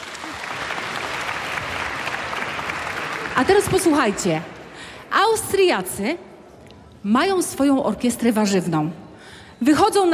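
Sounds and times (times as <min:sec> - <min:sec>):
audience applause: 0:00.0 - 0:04.4
speech: 0:03.4 - 0:04.5, 0:05.3 - 0:06.3, 0:07.0 - 0:09.0, 0:09.6 - 0:10.1.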